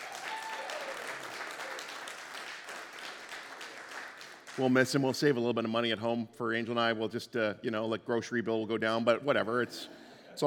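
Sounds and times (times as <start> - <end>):
audience applause: 0.0 - 4.7
speech: 4.6 - 10.4.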